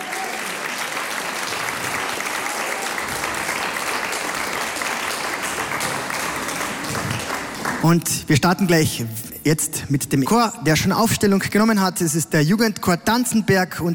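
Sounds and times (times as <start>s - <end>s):
audience applause: 0.0s - 8.0s
speech: 7.8s - 13.9s.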